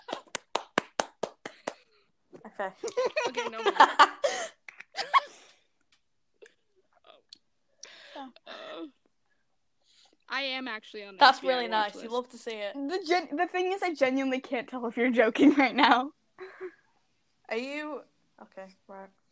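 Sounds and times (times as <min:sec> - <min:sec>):
clapping: 0:00.0 - 0:01.9
speech: 0:02.5 - 0:04.5, 0:10.6 - 0:16.2, 0:17.5 - 0:19.2.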